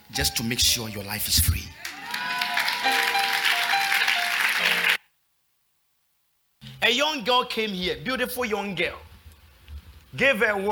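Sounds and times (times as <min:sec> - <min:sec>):
speech: 0:00.1 - 0:01.8, 0:06.9 - 0:09.1, 0:10.1 - 0:10.7
audience clapping: 0:01.7 - 0:05.0.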